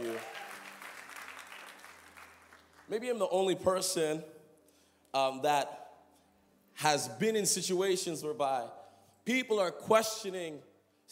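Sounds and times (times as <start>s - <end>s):
crowd clapping: 0.0s - 3.2s
speech: 2.9s - 4.4s, 5.1s - 5.8s, 6.8s - 11.1s.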